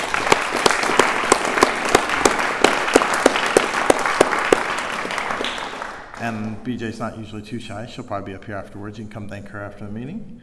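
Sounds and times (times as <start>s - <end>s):
round of applause from meeting audience: 0.0s - 6.6s
speech: 6.2s - 10.4s.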